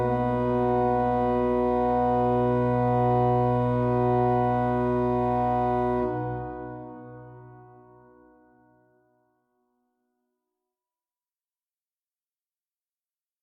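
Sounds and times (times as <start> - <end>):
organ chorale: 0.0 - 8.2.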